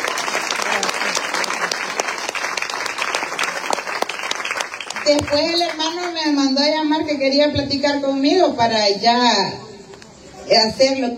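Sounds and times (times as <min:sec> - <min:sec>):
audience clapping: 0:00.0 - 0:06.3
speech: 0:05.1 - 0:09.6, 0:10.5 - 0:11.1.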